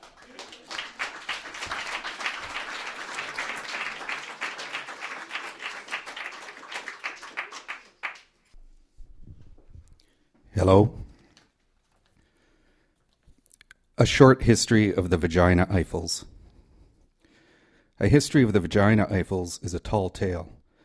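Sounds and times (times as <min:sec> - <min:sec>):
audience applause welcoming a performer on stage: 0:00.0 - 0:08.5
speech: 0:10.6 - 0:11.0, 0:14.0 - 0:16.4, 0:18.0 - 0:20.6.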